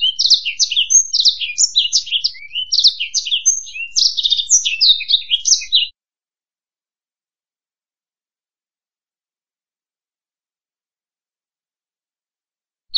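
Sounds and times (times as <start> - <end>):
black-throated canary singing: 0.0 - 5.9.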